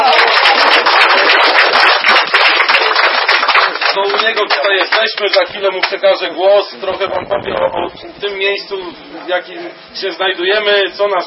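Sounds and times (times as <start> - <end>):
crowd applause: 0.0 - 5.4
speech: 5.0 - 11.2.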